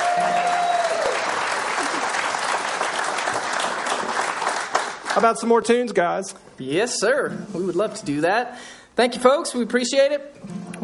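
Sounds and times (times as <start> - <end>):
audience applause for a band: 0.0 - 5.5
speech: 5.2 - 10.8.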